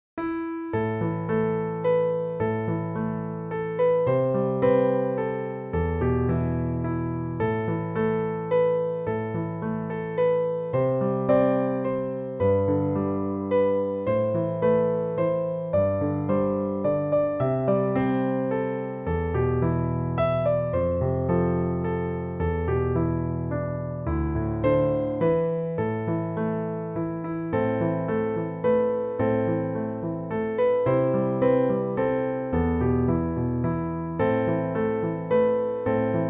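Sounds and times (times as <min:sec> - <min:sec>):
piano: 0:00.0 - 0:36.2.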